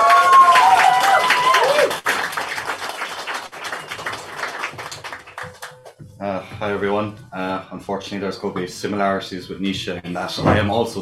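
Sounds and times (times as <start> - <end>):
audience round of applause: 0.0 - 5.9
speech: 6.7 - 11.0.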